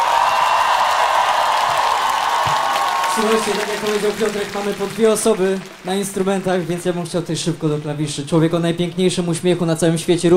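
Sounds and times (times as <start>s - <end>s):
audience applause: 0.0s - 8.3s
speech: 3.2s - 10.3s.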